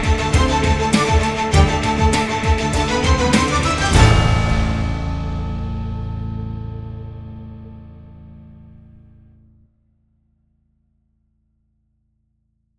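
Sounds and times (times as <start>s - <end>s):
news music melody: 0.0s - 9.0s.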